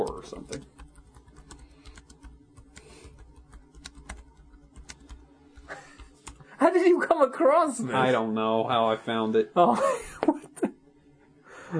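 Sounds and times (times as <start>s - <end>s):
speech: 0.0s - 0.7s, 6.6s - 10.4s
typing on a computer keyboard to search YouTube for a C64 video game clip: 0.0s - 6.4s.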